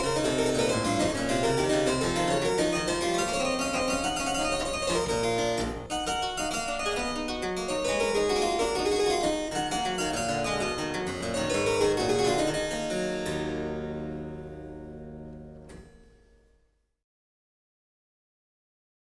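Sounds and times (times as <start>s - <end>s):
harpsichord gigue: 0.0s - 15.0s.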